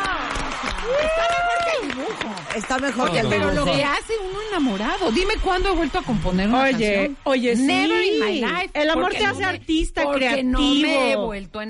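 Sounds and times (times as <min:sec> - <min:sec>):
scattered clapping: 0:00.0 - 0:05.0
speech: 0:02.2 - 0:11.6.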